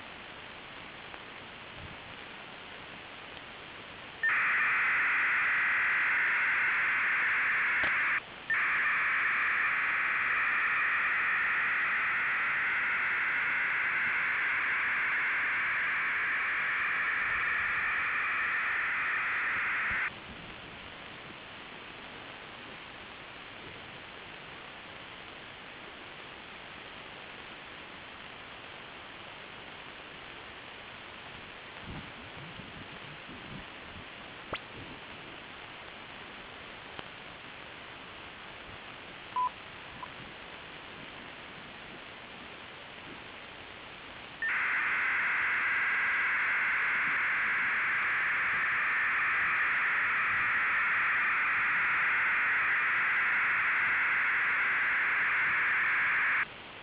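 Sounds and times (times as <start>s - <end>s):
PSK digital modem signal at 1200 baud: 4.2s - 20.1s, 44.4s - 56.5s.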